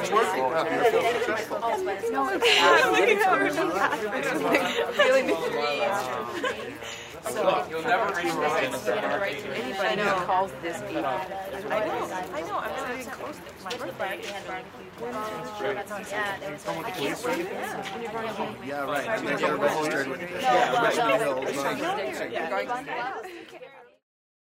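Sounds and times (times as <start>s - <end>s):
small crowds laughing: 0.0s - 8.9s, 19.2s - 23.6s
small crowds conversing: 0.0s - 24.0s.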